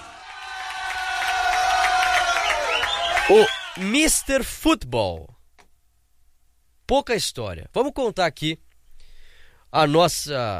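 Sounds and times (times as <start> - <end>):
applause: 0.0 - 4.2
speech: 3.3 - 5.3, 6.9 - 8.6, 9.7 - 10.5.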